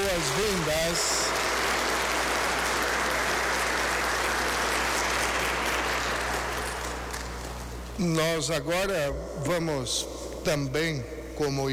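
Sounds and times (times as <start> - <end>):
audience applause: 0.0 - 7.8
speech: 0.2 - 1.6, 8.0 - 11.7.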